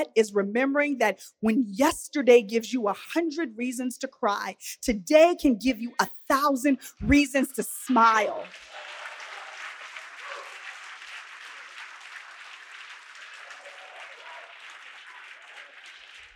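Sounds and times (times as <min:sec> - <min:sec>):
speech: 0:00.0 - 0:08.7
audience applause: 0:08.2 - 0:16.3.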